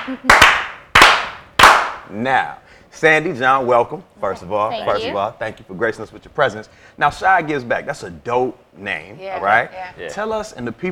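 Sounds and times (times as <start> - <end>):
slow clapping: 0.0 - 2.0
speech: 0.1 - 0.7, 2.1 - 10.9.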